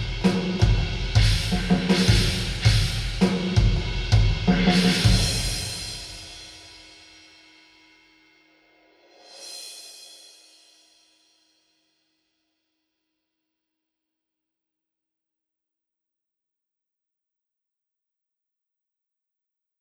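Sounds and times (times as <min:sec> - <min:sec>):
church mallet drums: 0:00.0 - 0:06.4.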